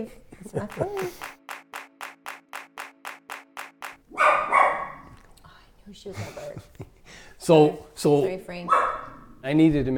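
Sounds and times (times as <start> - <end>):
speech: 0.0 - 1.4, 5.9 - 9.9
dog barking: 4.1 - 5.1, 8.7 - 9.4.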